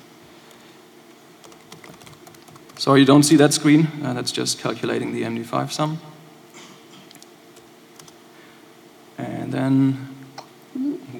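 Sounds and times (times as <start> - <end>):
typing a serial number on a computer keyboard: 1.4 - 2.9, 7.1 - 8.2
speech: 2.8 - 6.2, 9.6 - 10.1.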